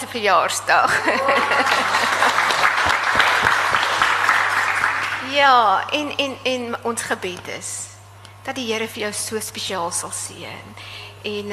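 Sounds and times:
speech: 0.1 - 2.4, 5.2 - 11.5
laughter: 0.8 - 3.4
audience applause: 1.2 - 5.3.

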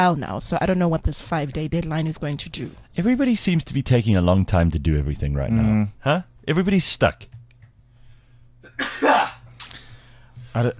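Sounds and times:
speech: 0.0 - 7.3, 10.6 - 10.7
person sneezing: 8.7 - 9.9.

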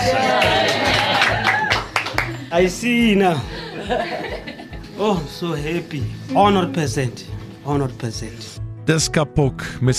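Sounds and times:
hands clapping: 0.0 - 2.8
speech: 2.5 - 9.9
laughter: 3.4 - 4.9.

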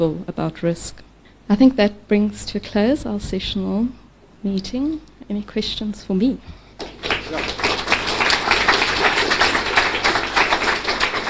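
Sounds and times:
speech: 0.0 - 6.6
hand clapping: 6.8 - 11.2.

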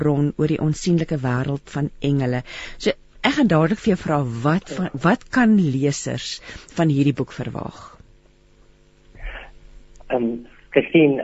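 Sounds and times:
speech: 0.0 - 7.9, 10.1 - 11.2
phone call audio breaking up: 9.2 - 11.2.

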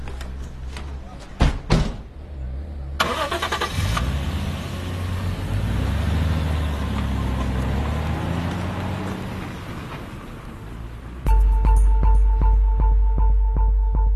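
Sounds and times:
car door clunking: 0.0 - 2.2
car engine cranking and starting: 1.9 - 14.0.

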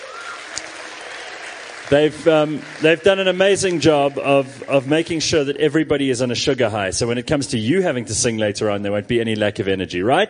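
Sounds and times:
audience applause: 0.0 - 6.3
speech: 1.9 - 10.2.

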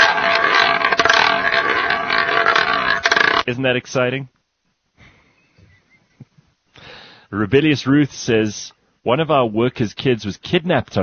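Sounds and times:
roulette wheel spinning: 0.0 - 3.5
speech: 3.5 - 4.3, 7.3 - 11.0.

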